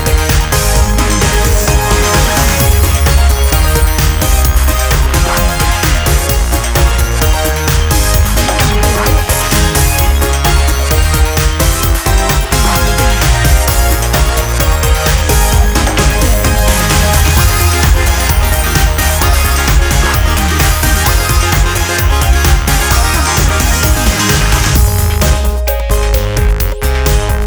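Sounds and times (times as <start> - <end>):
instrumental music: 0.0 - 27.4.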